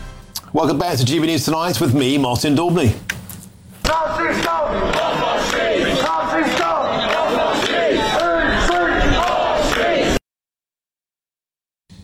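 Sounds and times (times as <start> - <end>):
speech: 0.6 - 3.1
protesters shouting and chanting outside the Oxford Union during a debate: 3.8 - 10.2.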